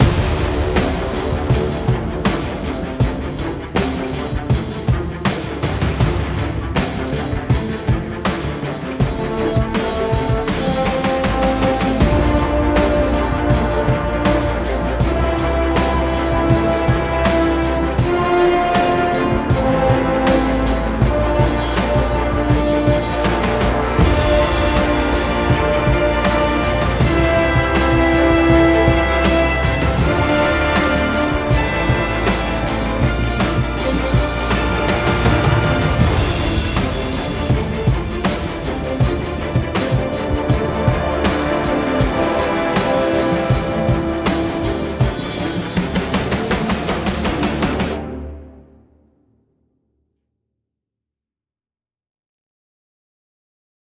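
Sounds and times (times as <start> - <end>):
orchestral music at 80 bpm: 0.0 - 49.4.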